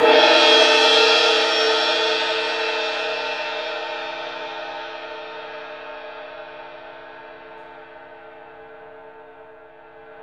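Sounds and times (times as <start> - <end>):
orchestral cymbal crash: 0.0 - 6.1.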